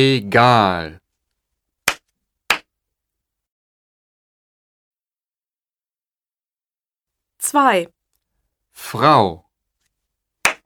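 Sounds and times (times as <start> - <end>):
speech: 0.0 - 1.0, 7.5 - 8.0, 8.8 - 9.4
hand claps marking the syllables of a German word: 1.9 - 2.7, 10.4 - 10.6.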